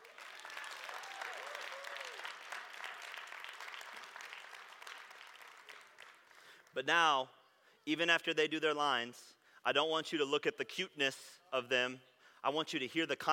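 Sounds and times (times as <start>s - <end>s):
audience applause: 0.0s - 6.7s
speech: 6.8s - 13.3s.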